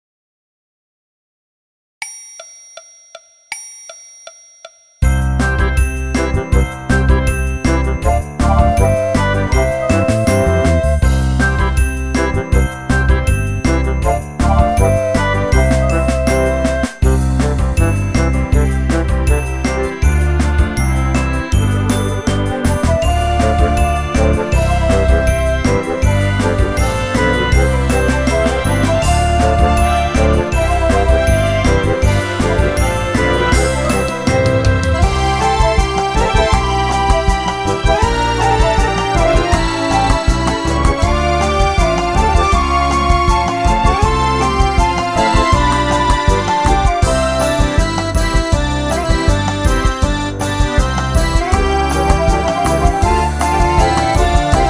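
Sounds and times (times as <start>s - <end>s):
orchestra: 5.1s - 54.6s.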